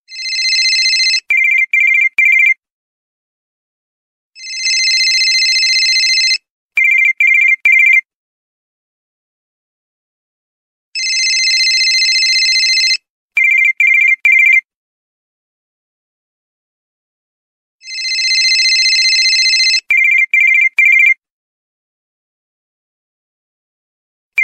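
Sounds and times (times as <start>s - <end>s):
cell phone tone: 0.1s - 2.5s, 4.4s - 8.0s, 11.0s - 14.6s, 17.8s - 21.2s.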